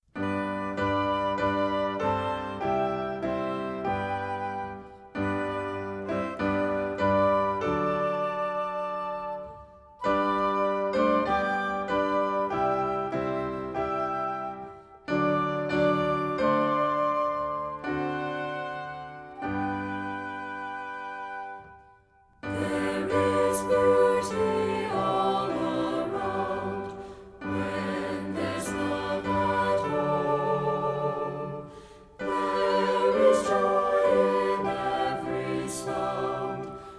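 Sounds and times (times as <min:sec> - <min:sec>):
song with vocals and instruments: 0:00.2 - 0:36.9.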